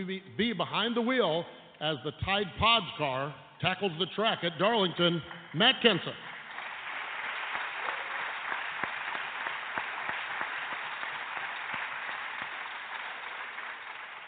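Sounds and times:
speech: 0.0s - 6.3s
audience applause: 6.2s - 14.2s.

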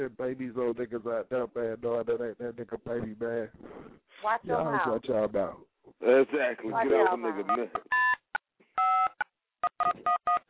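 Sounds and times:
speech: 0.0s - 8.0s, 8.8s - 10.4s
telephone answering machine beep and tones: 9.8s - 10.4s.

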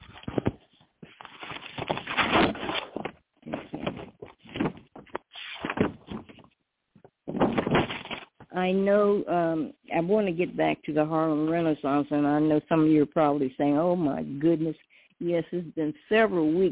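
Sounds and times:
paper pages turning: 0.0s - 6.6s, 7.3s - 8.5s
speech: 8.6s - 16.7s.

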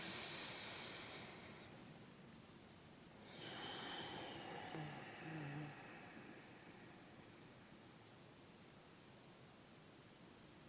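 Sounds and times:
slow deep breath: 0.0s - 2.1s, 3.2s - 7.8s.

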